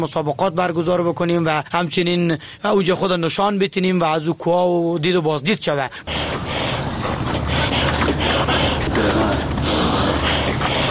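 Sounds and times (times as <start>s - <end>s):
speech: 0.0s - 6.5s
heavy labored breathing of a mountaineer climbing Siakoh mountain near Firozkoh: 5.9s - 10.8s.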